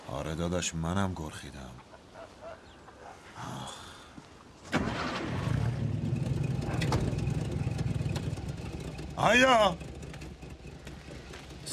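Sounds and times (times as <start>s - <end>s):
speech: 0.1s - 1.9s, 9.2s - 9.9s
car engine starting: 4.7s - 11.7s.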